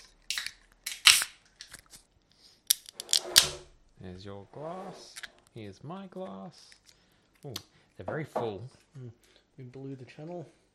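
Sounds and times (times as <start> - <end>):
can of wheat beer cracked open: 0.3 - 1.8
speech: 4.0 - 6.8, 7.4 - 10.6.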